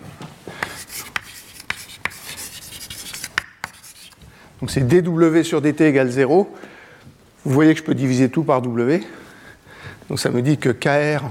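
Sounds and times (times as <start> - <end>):
equation being written out by hand with scratchy strokes: 0.6 - 4.2
speech: 4.6 - 6.7, 7.4 - 9.2, 10.1 - 11.2.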